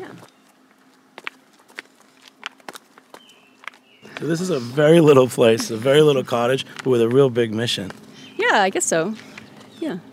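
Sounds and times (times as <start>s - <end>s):
footsteps walking down steps to the Helderberg Brewery cottage: 0.8s - 8.1s
speech: 4.2s - 10.1s.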